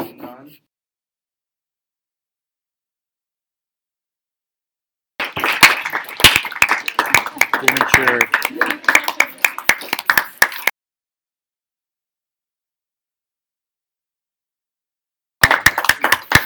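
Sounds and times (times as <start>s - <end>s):
vigorous clapping: 5.2s - 10.7s, 15.4s - 16.4s
speech: 8.0s - 8.6s.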